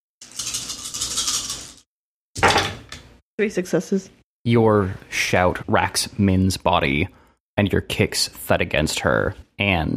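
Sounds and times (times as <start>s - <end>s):
handful of dice rattling and clattering: 0.2s - 1.8s
speech: 3.4s - 9.9s.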